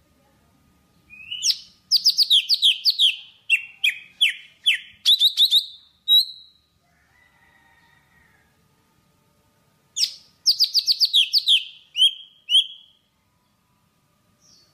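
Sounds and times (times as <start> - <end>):
Java sparrow singing: 1.1 - 6.6, 10.0 - 13.0.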